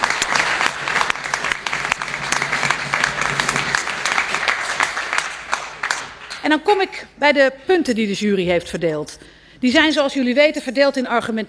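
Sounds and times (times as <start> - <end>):
audience applause: 0.0 - 6.4
speech: 6.4 - 11.4.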